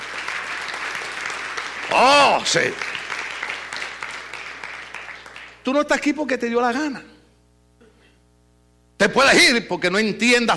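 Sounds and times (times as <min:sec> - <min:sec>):
audience applause: 0:00.0 - 0:05.7
speech: 0:01.9 - 0:02.9, 0:05.6 - 0:07.1, 0:09.0 - 0:10.5.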